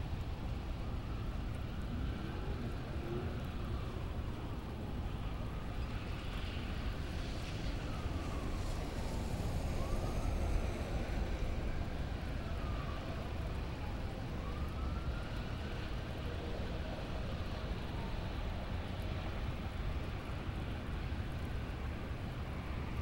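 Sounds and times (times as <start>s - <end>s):
pleasant rain: 0.0s - 23.0s.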